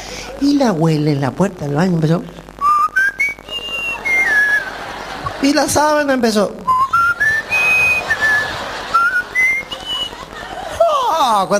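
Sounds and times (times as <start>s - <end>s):
speech: 0.4s - 2.4s, 5.4s - 6.7s, 11.4s - 11.5s
person whistling a flute-like melody: 2.6s - 4.7s, 6.7s - 10.1s
laughter: 3.4s - 6.1s, 6.9s - 11.5s.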